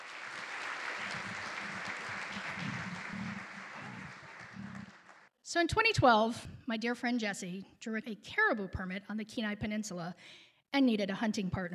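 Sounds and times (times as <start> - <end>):
audience applause welcoming a speaker: 0.0 - 5.3
speech: 5.5 - 11.7.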